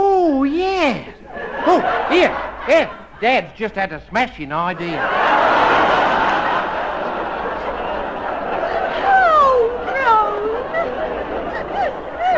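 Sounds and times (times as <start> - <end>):
laughter: 0.6 - 4.0, 4.6 - 12.3
speech: 1.8 - 5.7
woman sobbing loudly: 9.0 - 12.3.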